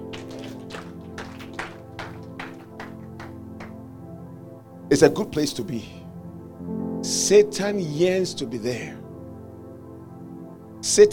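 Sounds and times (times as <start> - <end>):
audience clapping in rhythm: 0.0 - 3.9
droning musical backing: 0.0 - 11.1
speech: 4.9 - 6.0, 7.3 - 9.0, 10.9 - 11.1.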